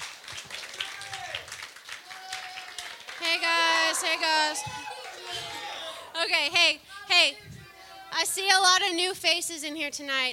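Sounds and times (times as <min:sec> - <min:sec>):
audience clapping: 0:00.0 - 0:05.8
speech: 0:03.4 - 0:04.9, 0:06.2 - 0:07.5, 0:08.1 - 0:10.3.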